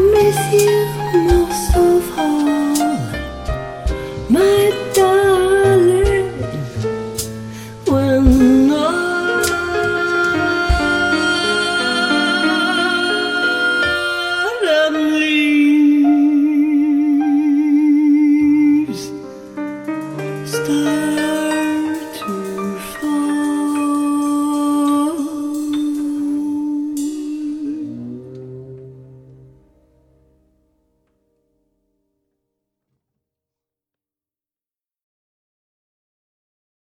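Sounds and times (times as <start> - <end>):
person singing: 0.0 - 3.3, 4.1 - 6.9, 7.8 - 19.3, 20.1 - 29.3.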